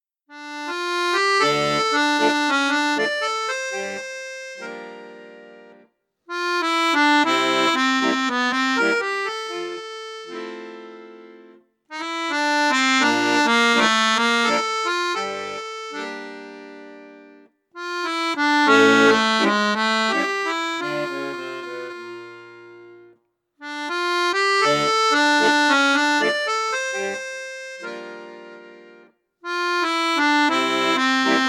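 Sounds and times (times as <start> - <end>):
accordion with flute register: 0.3 - 31.4.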